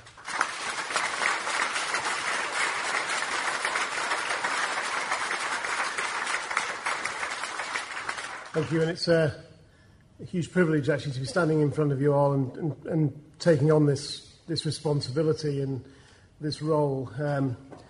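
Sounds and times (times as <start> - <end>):
audience applause: 0.0 - 9.0
speech: 8.6 - 9.4, 10.2 - 17.8.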